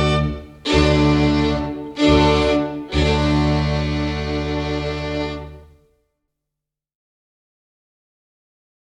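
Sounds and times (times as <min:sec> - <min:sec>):
Estonian instrumental film music: 0:00.0 - 0:06.1.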